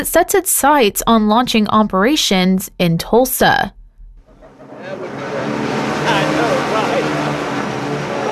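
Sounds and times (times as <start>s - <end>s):
speech: 0.0s - 3.8s
delivery drone hovering overhead: 3.7s - 8.3s.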